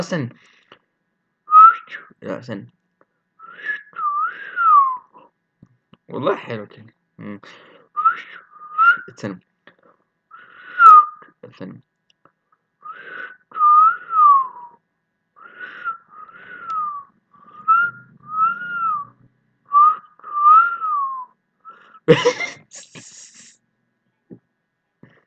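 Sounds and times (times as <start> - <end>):
speech: 0.0 - 0.6, 1.9 - 2.8, 6.1 - 8.3, 9.0 - 9.5, 11.4 - 11.9, 22.1 - 23.1
person whistling melodic phrases: 1.5 - 2.0, 3.4 - 5.2, 8.0 - 9.1, 10.7 - 11.3, 12.8 - 14.8, 15.6 - 22.0
laughter: 22.1 - 23.6.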